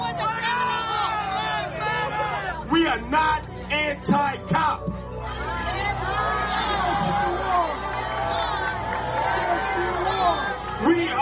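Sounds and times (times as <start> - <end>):
crowd booing: 0.0 - 2.7, 5.0 - 11.2
speech: 2.9 - 4.9.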